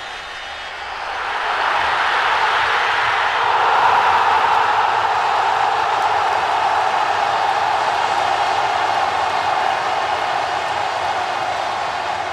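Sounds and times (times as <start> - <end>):
football fans cheering for a goal: 0.0 - 12.3.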